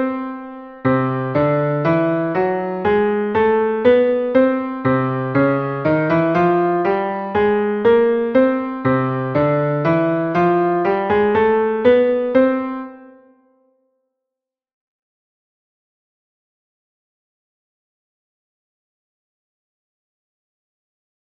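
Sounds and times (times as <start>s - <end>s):
musical scales in parallel shapes in C: 0.0s - 13.3s.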